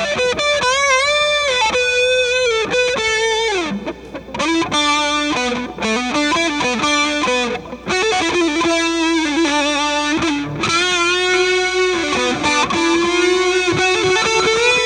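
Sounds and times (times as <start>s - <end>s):
Twin Reverb amplifier at high volume with Big Muff fuzz: 0.0s - 14.8s.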